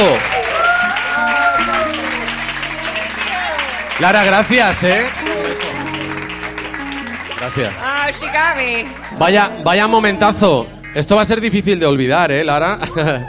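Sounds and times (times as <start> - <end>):
audience applause: 0.0 - 9.6
speech: 4.0 - 5.3, 7.4 - 13.2
laughter: 12.7 - 13.2.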